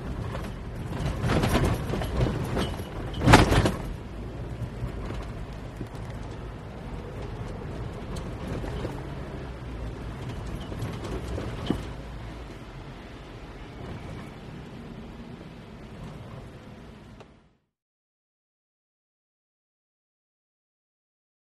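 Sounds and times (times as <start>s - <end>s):
suspension clunks, hits and rattles: 0.0s - 17.5s.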